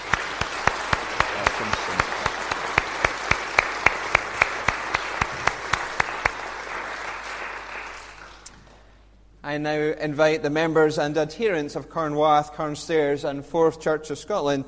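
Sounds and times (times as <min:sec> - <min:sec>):
audience applauding: 0:00.0 - 0:08.9
speech: 0:09.5 - 0:14.6.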